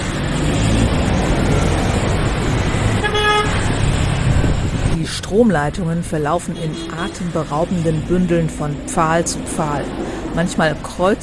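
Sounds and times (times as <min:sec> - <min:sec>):
loud city street traffic in Manila: 0:00.0 - 0:11.2
car horns honking: 0:02.7 - 0:04.2, 0:06.4 - 0:08.2
speech: 0:05.4 - 0:11.2.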